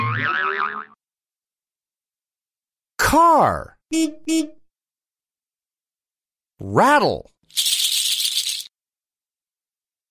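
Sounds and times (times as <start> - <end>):
springy cartoon boing for a bouncing ball: 0.0 - 1.0
speech: 3.1 - 4.6, 6.6 - 7.7.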